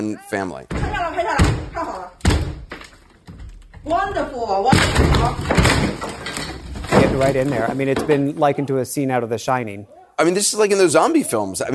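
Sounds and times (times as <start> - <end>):
speech: 0.0 - 2.2, 3.8 - 6.3, 7.1 - 11.7
door being kicked down: 0.7 - 8.2.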